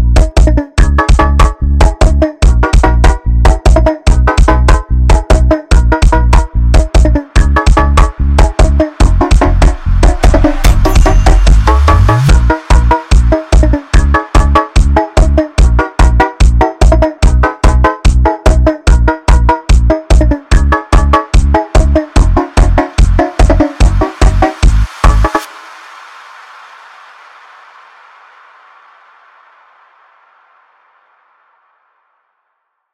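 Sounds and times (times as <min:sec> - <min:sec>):
sped-up funk instrumental: 0:00.0 - 0:25.5.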